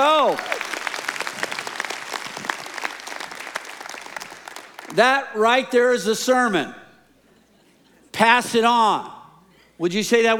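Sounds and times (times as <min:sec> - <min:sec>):
audience applause and cheering: 0:00.0 - 0:05.0
speech: 0:00.3 - 0:00.6, 0:05.0 - 0:06.8, 0:08.2 - 0:09.1, 0:09.8 - 0:10.3.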